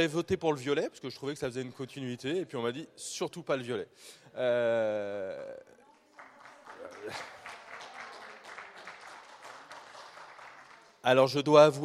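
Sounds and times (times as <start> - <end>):
speech: 0.0 - 5.7, 7.0 - 7.4, 11.0 - 11.8
applause: 5.8 - 11.7.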